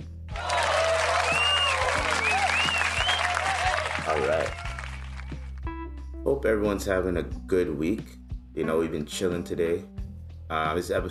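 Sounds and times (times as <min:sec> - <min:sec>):
applause: 0:00.3 - 0:05.6
speech: 0:06.4 - 0:11.0.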